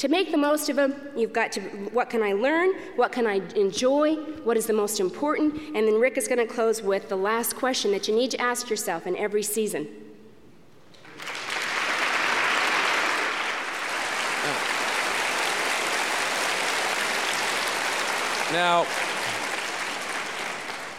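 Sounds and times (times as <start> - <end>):
speech: 0.0 - 10.0, 18.5 - 19.1
crowd applause: 11.0 - 20.9.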